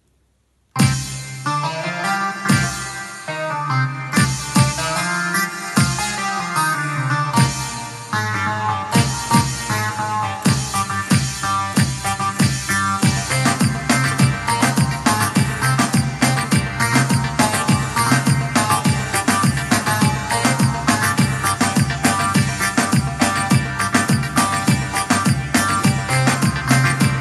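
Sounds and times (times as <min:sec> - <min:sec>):
Korg Pa 80 electronic keyboard: 0:00.8 - 0:27.1.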